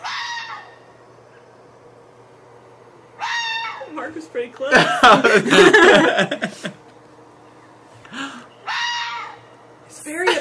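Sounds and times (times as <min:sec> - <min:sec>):
fox mating call scream: 0:00.0 - 0:00.8, 0:03.2 - 0:03.9, 0:08.6 - 0:09.4
speech: 0:04.1 - 0:06.5
laughter: 0:04.7 - 0:06.8.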